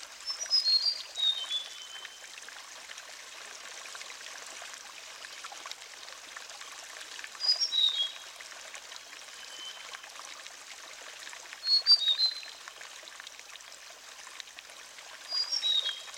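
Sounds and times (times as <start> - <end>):
Sulingan bird whistling song: 0.3 - 2.2, 7.4 - 8.2, 9.3 - 9.9, 11.7 - 12.6, 15.3 - 16.1.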